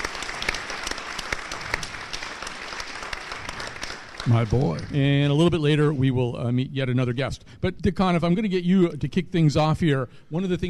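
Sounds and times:
crowd applauding: 0:00.0 - 0:05.4
speech: 0:04.3 - 0:10.6.

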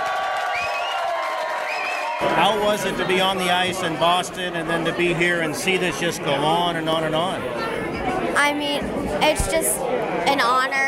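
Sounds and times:
large crowd applauding and cheering: 0:00.0 - 0:03.7
high rising whoops and whistles: 0:00.4 - 0:02.2
speech: 0:02.2 - 0:10.8.

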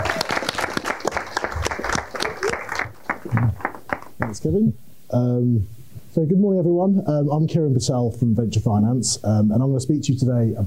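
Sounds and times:
crowd applauding: 0:00.0 - 0:04.4
speech: 0:04.4 - 0:10.6.

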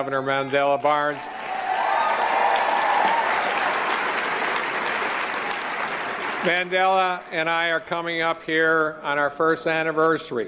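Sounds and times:
speech: 0:00.0 - 0:01.4, 0:06.4 - 0:10.4
audience applause: 0:00.9 - 0:07.4.

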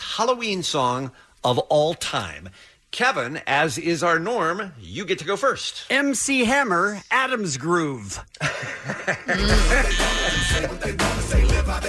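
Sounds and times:
speech: 0:00.2 - 0:11.8
laughter: 0:08.3 - 0:11.2
game show buzzer: 0:09.5 - 0:10.7.

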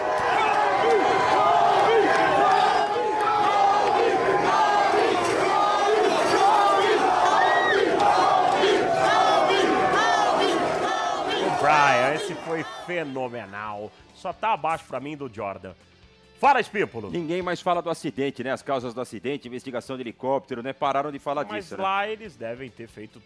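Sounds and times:
Lakers fans cheering in the streets: 0:00.0 - 0:13.5
speech: 0:12.6 - 0:23.2.

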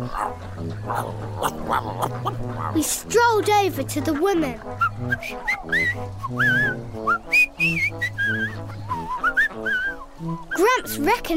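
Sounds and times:
dog growling: 0:00.0 - 0:02.9
speech: 0:00.1 - 0:11.3.

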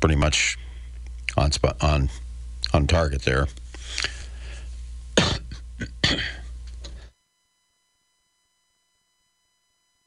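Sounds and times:
speech: 0:00.0 - 0:00.7, 0:01.3 - 0:04.2
person coughing: 0:05.2 - 0:06.5
throat clearing: 0:05.2 - 0:06.5.

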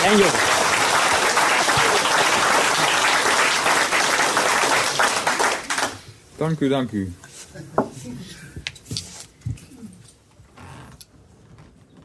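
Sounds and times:
crowd applause: 0:00.0 - 0:06.0
speech: 0:00.2 - 0:00.6, 0:06.4 - 0:07.7.

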